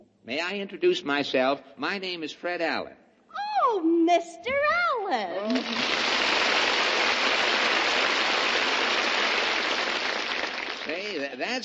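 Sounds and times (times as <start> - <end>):
speech: 0.2 - 3.0, 3.6 - 6.5, 10.9 - 11.6
audience applause: 5.5 - 11.6.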